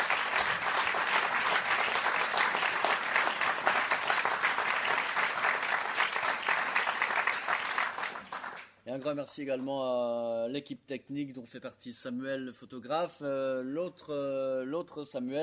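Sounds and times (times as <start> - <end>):
audience applause: 0.0 - 8.7
speech: 9.0 - 15.4.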